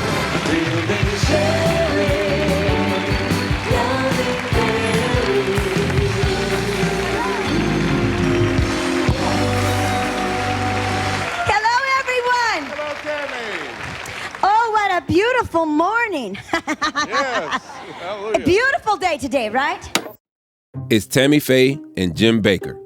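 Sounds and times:
studio audience clapping vigorously: 0:00.0 - 0:14.9
speech: 0:00.4 - 0:01.0, 0:15.5 - 0:20.0, 0:20.9 - 0:22.8
laughter: 0:16.4 - 0:18.5.

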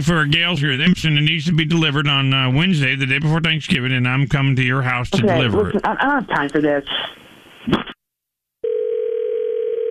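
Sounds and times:
speech: 0:00.0 - 0:07.9
telephone dial tone after call disconnects: 0:08.6 - 0:09.8.

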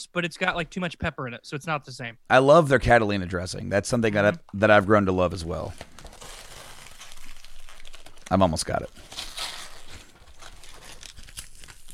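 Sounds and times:
speech: 0:00.0 - 0:05.9, 0:08.3 - 0:09.2
packing tape being ripped during an unboxing: 0:05.7 - 0:11.9.

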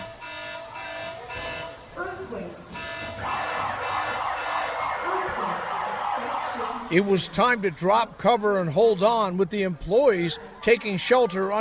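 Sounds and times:
earthquake drill electronic alarm blaring: 0:00.0 - 0:02.0, 0:02.7 - 0:06.8
murmur of people talking and moving: 0:00.0 - 0:11.5
speech: 0:06.9 - 0:11.5.

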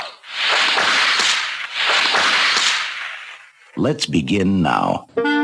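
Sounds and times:
bullwhip crack: 0:00.0 - 0:03.6
speech: 0:03.8 - 0:05.3.

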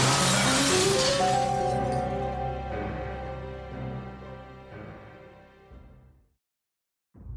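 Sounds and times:
glass cabinet shattering: 0:00.0 - 0:02.6
ringing tinkling glass shards: 0:00.0 - 0:02.6.

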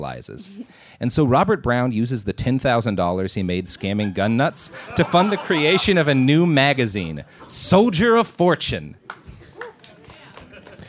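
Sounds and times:
speech: 0:00.0 - 0:09.2
laughter: 0:03.4 - 0:08.0, 0:09.4 - 0:10.8
sparse scattered claps: 0:09.0 - 0:10.8.

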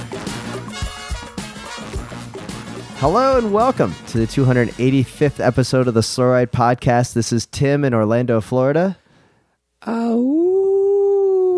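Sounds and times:
speech: 0:03.0 - 0:09.0, 0:09.8 - 0:10.4
man imitating a wolf howl: 0:10.1 - 0:11.5.

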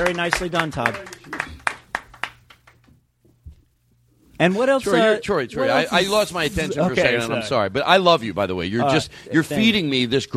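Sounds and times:
speech: 0:00.0 - 0:01.4, 0:04.4 - 0:10.3
audience clapping for a contestant: 0:00.0 - 0:03.0.

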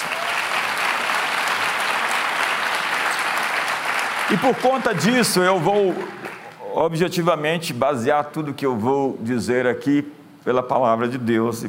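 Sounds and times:
audience applause: 0:00.0 - 0:06.6
speech: 0:04.3 - 0:11.6.

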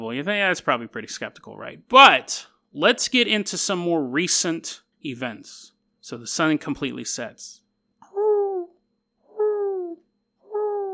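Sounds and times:
speech: 0:00.0 - 0:07.6
owl hooting: 0:08.0 - 0:10.9.

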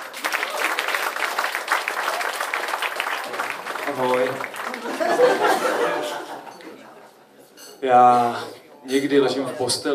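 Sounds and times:
audience applause: 0:00.0 - 0:06.4
speech: 0:03.9 - 0:06.2, 0:07.8 - 0:09.9
laughter: 0:04.6 - 0:07.4.

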